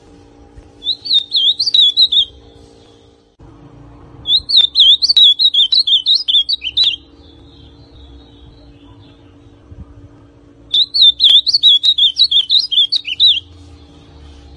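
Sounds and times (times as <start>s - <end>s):
ultramarine grosbeak song: 0.8s - 3.2s, 4.2s - 9.5s, 10.7s - 14.5s.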